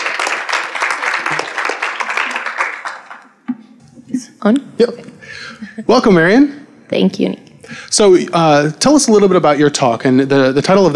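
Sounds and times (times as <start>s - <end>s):
audience applause: 0.0s - 3.4s
speech: 4.4s - 10.9s.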